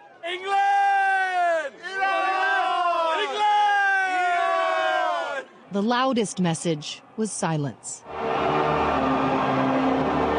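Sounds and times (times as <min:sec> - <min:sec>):
football stadium crowd cheering: 0:00.0 - 0:05.5, 0:08.0 - 0:10.3
speech: 0:05.7 - 0:08.7.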